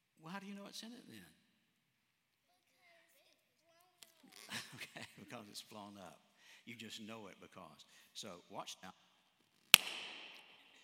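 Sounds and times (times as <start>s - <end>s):
speech: 0.4s - 1.4s, 4.7s - 9.1s
balloon popping: 9.8s - 10.8s.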